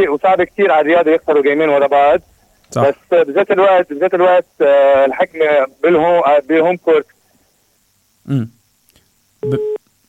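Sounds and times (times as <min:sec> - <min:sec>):
speech: 0:00.0 - 0:07.2, 0:08.2 - 0:08.6, 0:09.4 - 0:10.0
telephone busy tone after a call to a radio show drops: 0:09.4 - 0:10.0.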